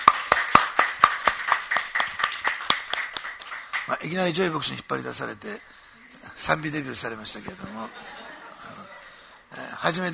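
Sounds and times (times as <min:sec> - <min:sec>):
welcoming applause: 0:00.0 - 0:04.0
speech: 0:03.9 - 0:05.8, 0:06.4 - 0:08.8, 0:09.8 - 0:10.1
laughter: 0:07.4 - 0:09.4.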